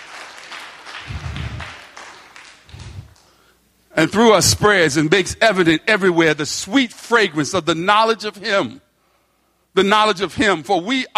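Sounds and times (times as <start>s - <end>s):
audience clapping hands: 0.0s - 3.4s
speech: 4.0s - 8.8s, 9.8s - 11.1s.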